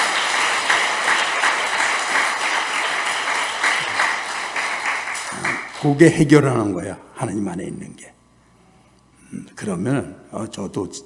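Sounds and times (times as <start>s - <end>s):
audience applause: 0.0s - 6.0s
speech: 5.8s - 8.2s, 9.3s - 11.0s.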